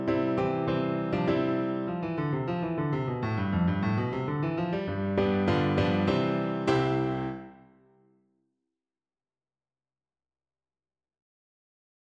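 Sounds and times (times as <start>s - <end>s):
piano duet: 0.0s - 8.0s.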